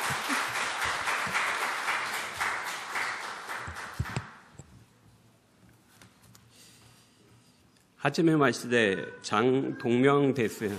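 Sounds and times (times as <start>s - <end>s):
audience applause: 0.0s - 4.4s
speech: 0.1s - 0.4s, 8.0s - 10.7s.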